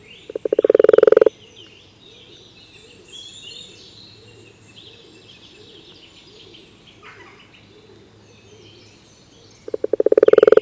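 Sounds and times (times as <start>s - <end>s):
common toad giving a rattling trill: 0.3s - 1.3s, 9.7s - 10.6s.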